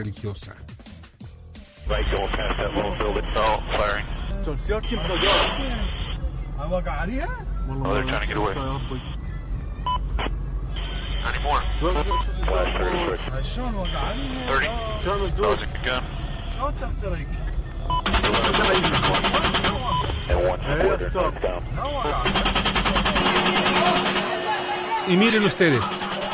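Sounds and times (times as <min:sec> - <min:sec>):
speech: 0:00.0 - 0:00.8, 0:01.9 - 0:06.0, 0:06.6 - 0:09.1, 0:11.2 - 0:17.4, 0:18.1 - 0:19.6, 0:20.3 - 0:24.2, 0:25.0 - 0:26.1
crackly radio-style voices talking: 0:01.9 - 0:09.2, 0:10.1 - 0:26.3
automatic gunfire: 0:22.3 - 0:24.4.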